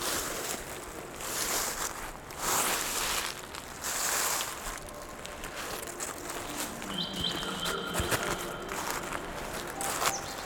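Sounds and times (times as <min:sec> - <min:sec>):
footsteps crunching dry autumn leaves: 0:00.2 - 0:10.4
faint thin high tones: 0:06.0 - 0:10.4.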